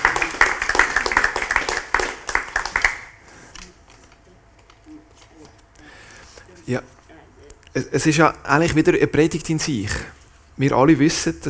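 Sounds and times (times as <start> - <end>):
crowd applauding: 0.0 - 3.2
speech: 6.7 - 7.0, 7.8 - 11.4.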